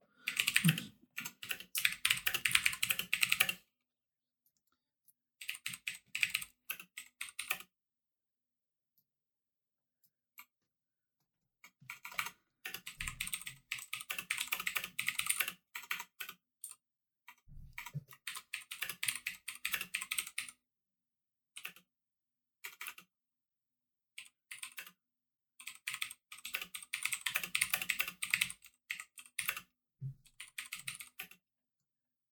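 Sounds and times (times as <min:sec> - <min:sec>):
typing on a computer keyboard: 0:00.2 - 0:03.6, 0:05.4 - 0:07.7, 0:11.8 - 0:20.6, 0:21.6 - 0:21.9, 0:22.6 - 0:23.1, 0:24.2 - 0:25.0, 0:25.6 - 0:29.7, 0:30.3 - 0:31.4.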